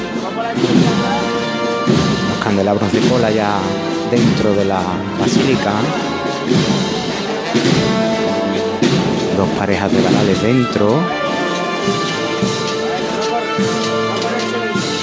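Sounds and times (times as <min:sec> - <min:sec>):
band playing a processional march: 0:00.0 - 0:15.0
speech: 0:02.6 - 0:06.9, 0:07.5 - 0:08.1, 0:09.4 - 0:11.2, 0:11.9 - 0:12.6.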